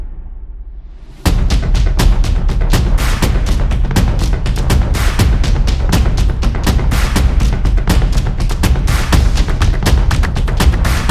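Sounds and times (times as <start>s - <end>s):
drum solo: 1.3s - 11.1s.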